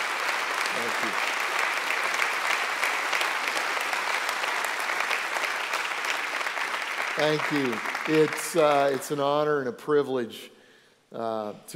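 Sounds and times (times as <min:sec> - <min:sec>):
audience applause welcoming a guest speaker at a church gathering: 0:00.0 - 0:09.3
speech: 0:00.8 - 0:01.4, 0:07.2 - 0:11.7.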